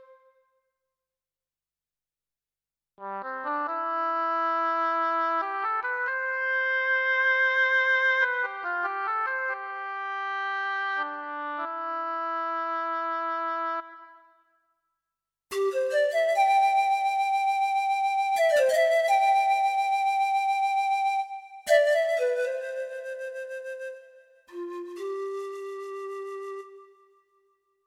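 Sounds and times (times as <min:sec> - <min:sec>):
woodwind instruments: 0:00.0 - 0:00.5, 0:03.0 - 0:14.4, 0:15.5 - 0:27.6
brass instruments: 0:03.0 - 0:14.2.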